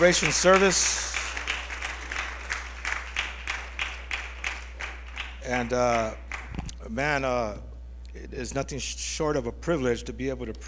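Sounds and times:
speech: 0.0 - 1.1, 5.5 - 6.2, 6.9 - 10.6
audience clapping in rhythm: 0.0 - 6.8
low constant hum: 0.0 - 8.5.

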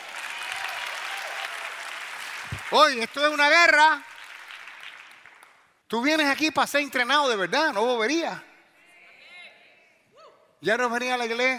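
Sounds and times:
audience applause: 0.0 - 3.4, 4.0 - 5.6
speech: 2.7 - 4.1, 5.9 - 8.5, 10.6 - 11.5.

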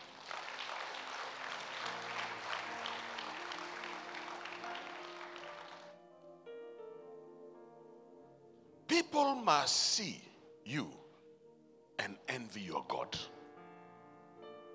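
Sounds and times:
audience clapping: 0.0 - 6.0
sustained keyboard chords: 1.4 - 14.7
speech: 9.1 - 11.0, 12.3 - 13.3.

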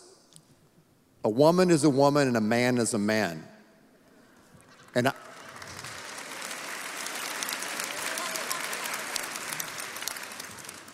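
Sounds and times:
speech: 1.2 - 3.5, 5.0 - 5.3
audience applause: 4.7 - 10.9.

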